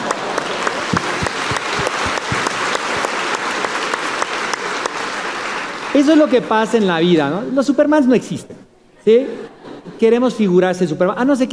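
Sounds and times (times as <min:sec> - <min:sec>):
audience applause: 0:00.0 - 0:06.8
speech: 0:06.0 - 0:11.5.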